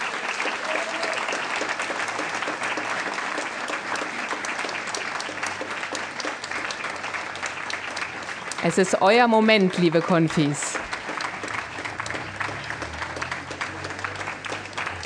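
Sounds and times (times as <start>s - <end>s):
audience applauding: 0.0s - 15.0s
speech: 8.6s - 10.8s.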